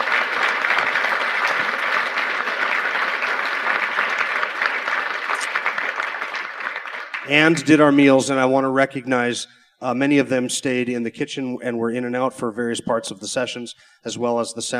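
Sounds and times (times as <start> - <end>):
audience applause: 0.0 - 7.8
speech: 7.3 - 14.7.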